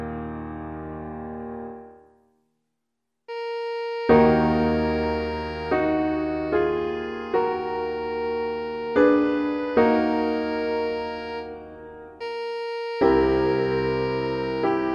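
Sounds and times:
alto saxophone playing: 3.3 - 14.9.

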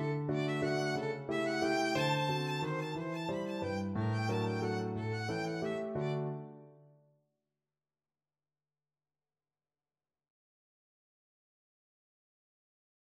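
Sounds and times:
violin: 0.0 - 6.5.

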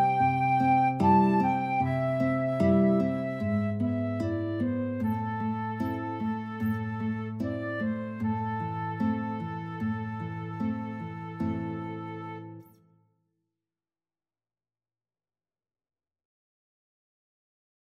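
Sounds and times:
flute in a duet: 0.0 - 12.8
guitar in a duet: 0.0 - 12.9.

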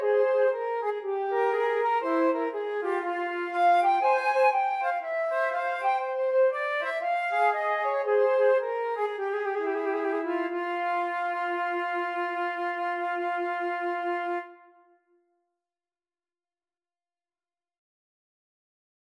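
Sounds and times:
flute trio playing a baroque bourree: 0.0 - 14.7.

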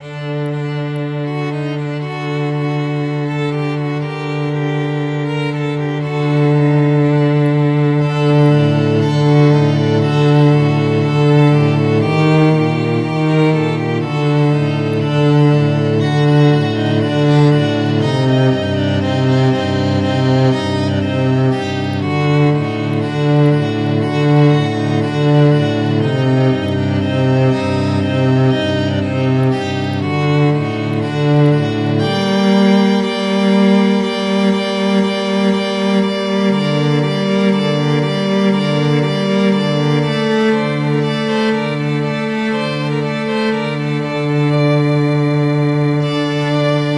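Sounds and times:
cellos: 0.0 - 46.9
violins: 0.0 - 46.9.

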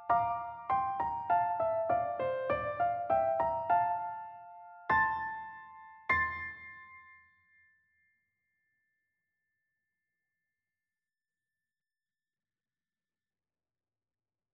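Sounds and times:
four-hands piano duet: 0.0 - 7.2.

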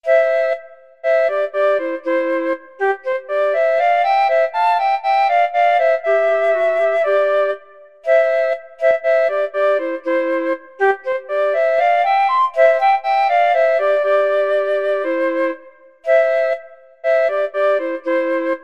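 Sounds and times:
flute and clarinet duet: 0.0 - 18.6.

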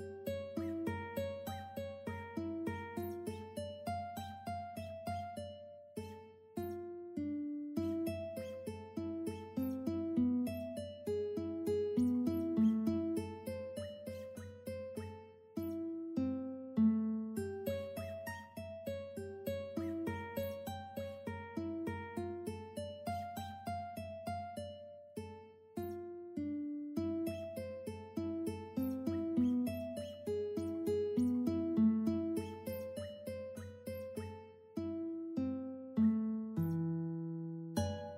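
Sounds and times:
guitar in a studio: 0.0 - 38.1.

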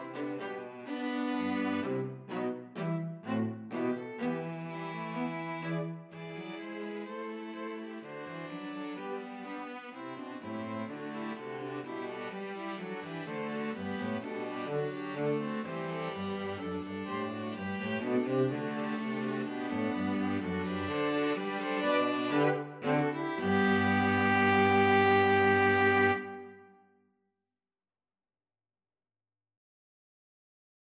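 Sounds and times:
string quartet playing a bourree: 0.0 - 26.6.

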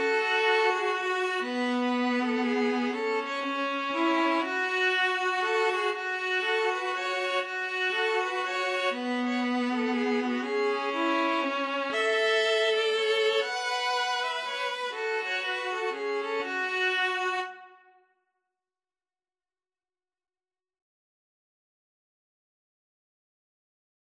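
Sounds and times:
violin and viola duet: 0.0 - 17.8.

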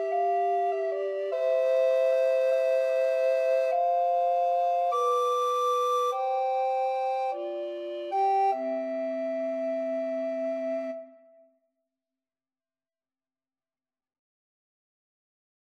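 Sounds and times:
recorder trio playing a folk tune: 0.0 - 10.8.

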